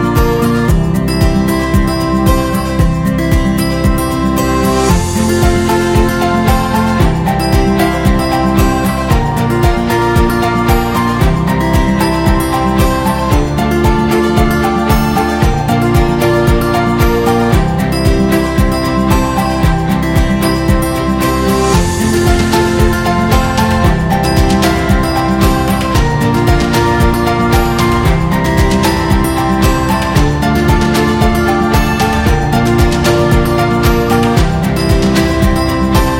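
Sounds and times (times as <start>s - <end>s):
upbeat acoustic guitar: 0.0s - 36.1s.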